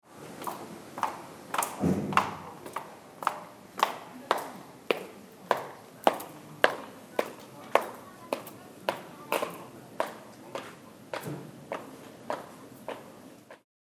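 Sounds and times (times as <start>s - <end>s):
footsteps: 0.4s - 13.6s.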